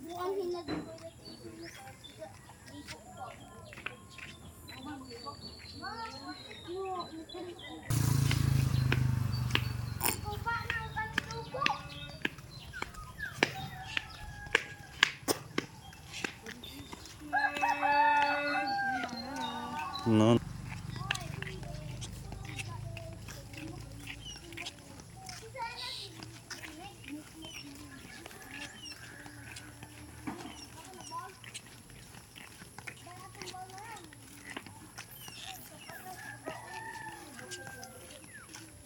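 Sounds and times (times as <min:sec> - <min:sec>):
children chattering while walking along the street with friends: 0:00.0 - 0:38.8
loud low rumble: 0:07.9 - 0:11.1.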